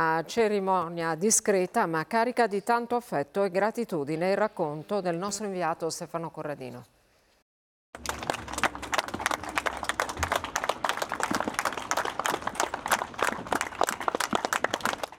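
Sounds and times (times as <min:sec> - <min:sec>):
speech: 0:00.0 - 0:07.0
crowd applauding at funeral: 0:08.0 - 0:15.1.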